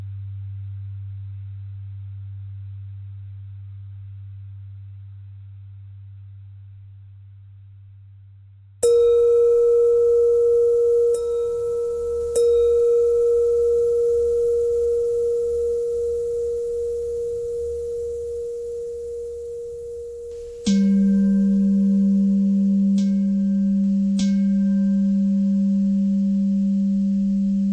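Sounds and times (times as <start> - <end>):
bell: 8.8 - 27.6.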